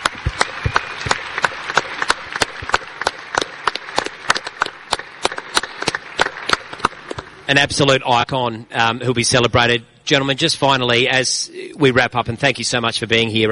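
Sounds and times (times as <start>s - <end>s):
audience applause: 0.0s - 7.5s
speech: 7.5s - 13.5s.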